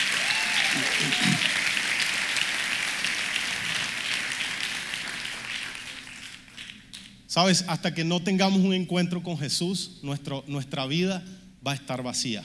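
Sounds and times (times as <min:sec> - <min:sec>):
audience applause: 0:00.0 - 0:06.8
speech: 0:00.7 - 0:01.6, 0:07.4 - 0:12.4.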